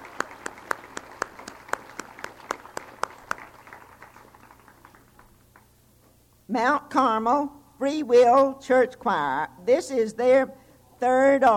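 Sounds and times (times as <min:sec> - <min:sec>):
audience clapping in a steady even rhythm: 0:00.0 - 0:05.7
speech: 0:06.5 - 0:11.5.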